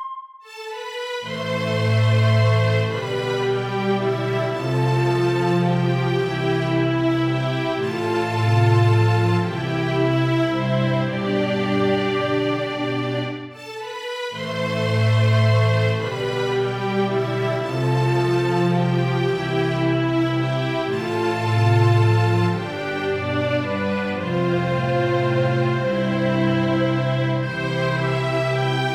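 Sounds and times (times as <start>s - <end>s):
Celtic lament music: 0.5s - 28.9s.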